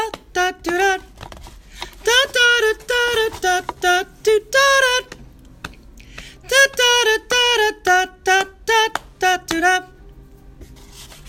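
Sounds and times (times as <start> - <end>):
soprano singing: 0.0 - 1.2, 2.0 - 5.2, 6.4 - 10.1
descant singing: 2.0 - 5.2, 6.4 - 10.0.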